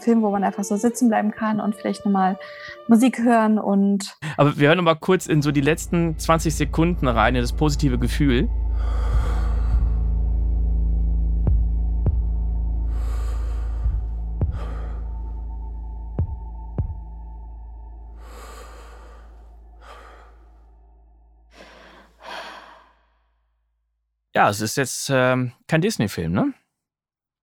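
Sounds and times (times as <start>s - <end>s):
speech: 0.0s - 9.3s, 24.4s - 26.6s
slow heavy breathing: 4.2s - 4.7s, 8.5s - 10.5s, 12.8s - 17.2s, 18.0s - 20.8s, 21.5s - 23.2s
low rumble: 4.2s - 23.1s.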